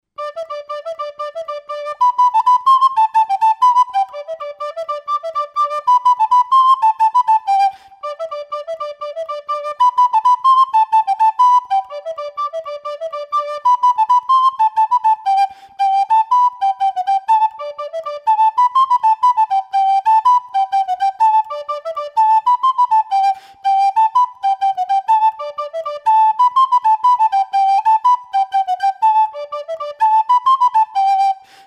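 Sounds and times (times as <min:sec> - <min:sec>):
traditional Galician whistle music: 0:00.2 - 0:31.6.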